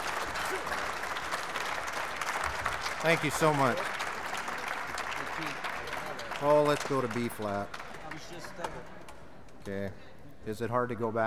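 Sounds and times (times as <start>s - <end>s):
audience applause: 0.0s - 8.9s
speech: 3.0s - 4.0s, 6.4s - 9.0s, 9.6s - 11.2s.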